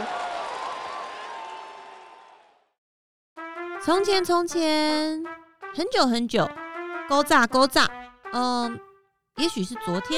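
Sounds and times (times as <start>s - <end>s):
crowd applause: 0.0s - 2.6s
speech: 3.8s - 10.1s.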